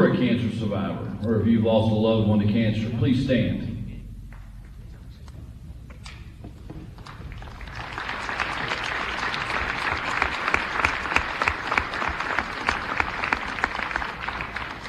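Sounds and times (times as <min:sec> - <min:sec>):
speech: 0:00.7 - 0:03.7
audience applause: 0:06.9 - 0:14.8.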